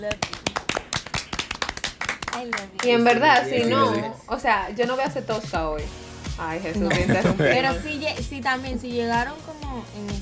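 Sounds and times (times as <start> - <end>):
speech: 0.0 - 0.4, 2.4 - 10.1
hands clapping applause: 0.0 - 3.7
laughter: 6.8 - 8.0.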